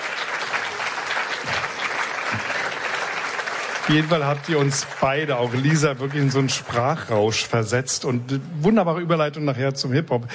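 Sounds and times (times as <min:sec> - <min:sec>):
steady audience applause: 0:00.0 - 0:07.7
speech: 0:03.9 - 0:10.3.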